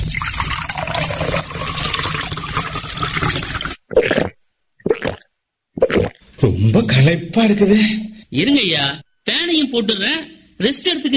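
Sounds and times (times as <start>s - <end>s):
cool buttermilk poured out: 0.0s - 3.8s
speech: 6.4s - 11.1s.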